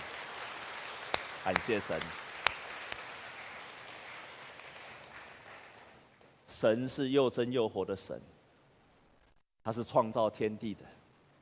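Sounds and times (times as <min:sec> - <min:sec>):
audience applause: 0:00.0 - 0:06.0
speech: 0:01.4 - 0:02.2, 0:06.6 - 0:08.4, 0:09.6 - 0:11.0.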